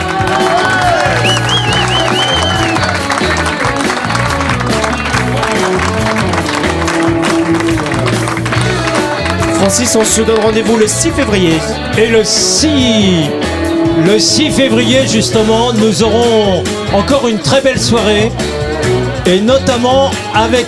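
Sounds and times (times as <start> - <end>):
cheering: 0.0 - 7.0
audience applause: 0.0 - 10.8
band playing: 0.0 - 20.6
speech: 9.7 - 18.6, 19.2 - 20.6.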